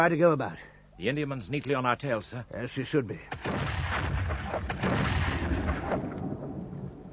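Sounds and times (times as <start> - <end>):
speech: 0.0 - 3.8
booming cannon fire from a shore battery at a sailing ship: 3.3 - 7.1.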